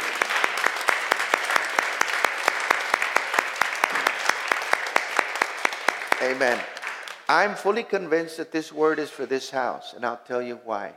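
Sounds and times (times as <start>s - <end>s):
audience clapping hands: 0.0s - 7.6s
speech: 6.2s - 6.7s, 7.3s - 10.9s.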